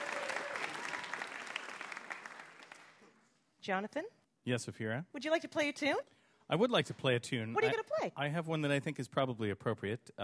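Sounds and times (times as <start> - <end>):
audience applause for the winner: 0.0 - 3.0
speech: 3.7 - 10.2.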